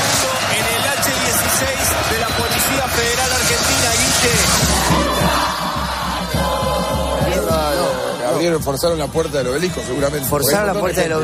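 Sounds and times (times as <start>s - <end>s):
huge street crowd cheering: 0.0s - 11.2s
speech: 8.6s - 11.2s.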